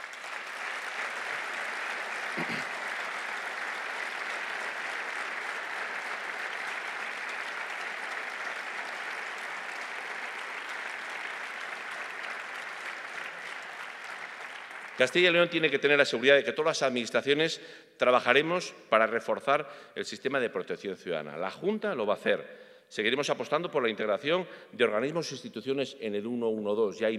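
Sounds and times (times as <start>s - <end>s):
audience applause: 0.0s - 16.3s
speech: 15.0s - 27.1s.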